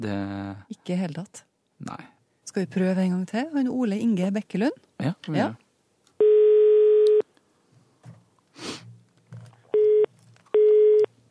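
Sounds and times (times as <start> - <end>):
speech: 0.0 - 5.6
telephone busy signal: 6.2 - 7.2, 9.8 - 11.1
person sniffing: 8.5 - 8.9.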